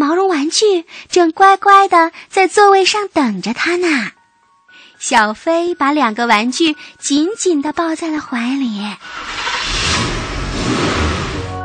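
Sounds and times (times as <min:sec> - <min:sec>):
speech: 0:00.5 - 0:04.2, 0:05.0 - 0:09.6
bus engine rumbling: 0:09.0 - 0:11.6
road noise: 0:09.0 - 0:11.6.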